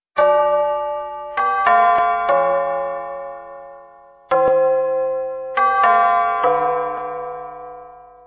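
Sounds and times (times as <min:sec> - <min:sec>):
tubular bells: 0:00.2 - 0:08.2.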